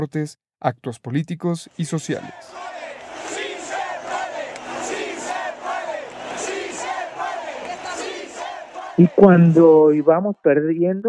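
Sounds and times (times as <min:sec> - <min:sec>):
speech: 0:00.0 - 0:02.6, 0:09.0 - 0:11.0
stadium crowd chanting in unison: 0:01.7 - 0:10.0.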